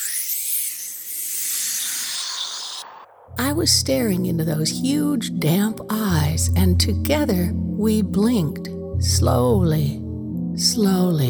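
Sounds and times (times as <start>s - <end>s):
steam hissing from hot food: 0.0s - 3.0s
speech: 3.4s - 10.0s, 10.6s - 11.2s.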